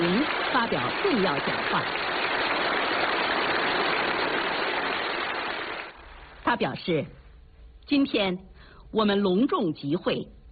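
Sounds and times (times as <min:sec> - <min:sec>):
warm applause from full audience: 0:00.0 - 0:06.4
speech: 0:00.6 - 0:02.1, 0:06.5 - 0:07.2, 0:07.9 - 0:10.4.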